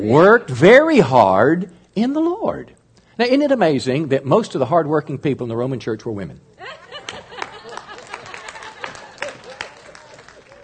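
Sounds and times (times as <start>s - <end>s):
speech: 0.0s - 7.2s
people chuckling: 6.6s - 10.6s
scattered audience clapping: 7.0s - 10.6s.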